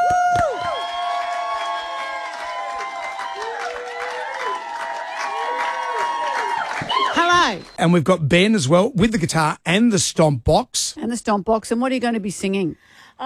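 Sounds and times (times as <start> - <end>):
scattered applause: 0.0 - 7.8
studio crowd cheering and whooping: 0.0 - 8.1
speech: 7.3 - 13.2.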